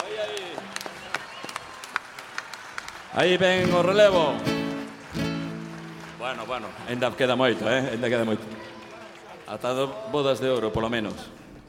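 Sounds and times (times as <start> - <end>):
light scattered audience applause: 0.0 - 11.2
speech: 3.2 - 4.5, 6.2 - 8.7, 9.5 - 11.4.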